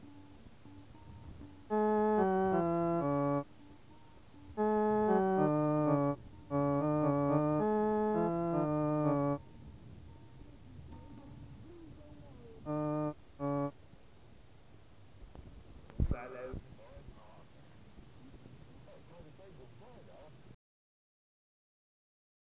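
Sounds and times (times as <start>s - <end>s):
piano: 0.0s - 13.8s.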